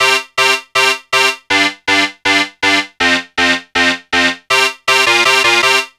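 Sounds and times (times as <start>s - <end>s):
hardcore dance synth loops: 0.0s - 5.8s.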